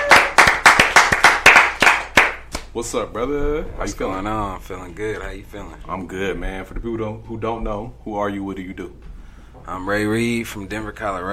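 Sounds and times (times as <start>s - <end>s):
loud steady clapping: 0.0s - 2.8s
speech: 2.8s - 11.3s.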